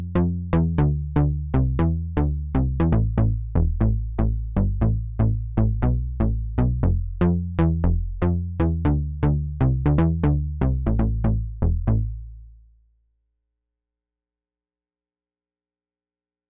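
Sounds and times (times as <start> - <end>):
Sub37 fancy bass: 0.0 - 12.5.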